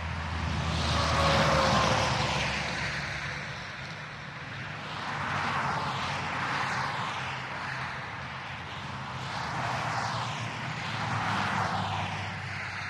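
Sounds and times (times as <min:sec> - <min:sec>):
busy highway traffic: 0:00.0 - 0:12.8.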